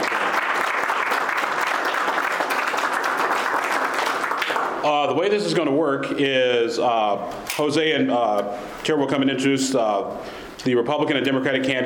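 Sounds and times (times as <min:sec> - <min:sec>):
audience applause: 0:00.0 - 0:04.8
speech: 0:04.9 - 0:11.8.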